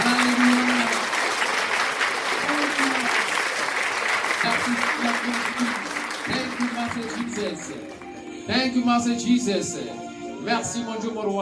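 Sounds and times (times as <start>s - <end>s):
audience applauding: 0.0s - 8.4s
speech: 7.6s - 11.3s.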